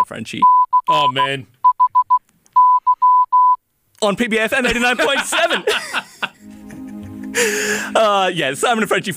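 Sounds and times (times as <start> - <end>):
Morse code beeps: 0.0 - 3.6
speech: 0.1 - 1.6, 4.0 - 6.0, 7.4 - 9.1
laughter: 4.6 - 8.2.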